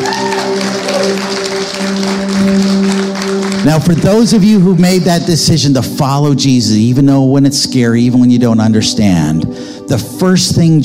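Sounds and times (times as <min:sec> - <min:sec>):
audience applause: 0:00.0 - 0:04.4
speech: 0:03.6 - 0:10.8.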